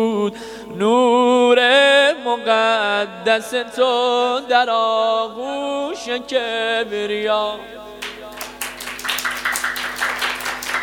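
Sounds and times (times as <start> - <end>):
speech: 0.0 - 7.8
steady hand clapping: 8.0 - 10.8.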